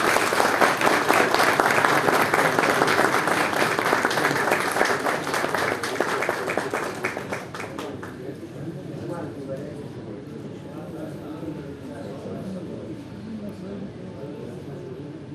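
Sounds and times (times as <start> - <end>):
audience applause: 0.0 - 8.3.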